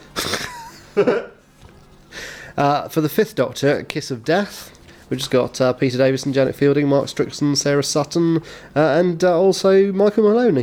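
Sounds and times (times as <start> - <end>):
laughter: 0.0 - 1.4
speech: 1.0 - 1.4, 2.6 - 10.6
person sniffing near the microphone: 2.1 - 2.6.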